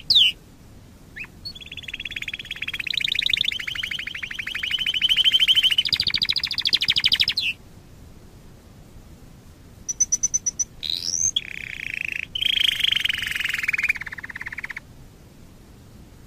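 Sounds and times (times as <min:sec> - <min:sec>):
Waterslager canary song: 0:00.0 - 0:00.4, 0:01.1 - 0:07.6, 0:09.8 - 0:14.9.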